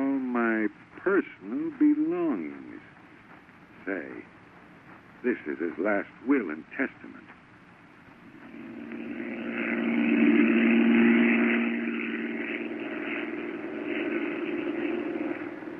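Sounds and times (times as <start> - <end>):
airplane circling overhead: 0.0 - 15.7
speech: 0.7 - 2.7, 3.9 - 4.3, 5.2 - 7.3.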